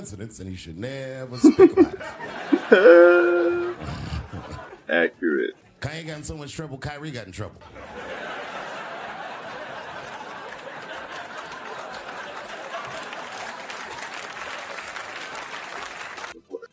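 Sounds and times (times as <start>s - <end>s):
speech: 0.0s - 8.1s
laughter: 1.4s - 5.5s, 7.6s - 16.3s
audience clapping: 8.4s - 16.4s.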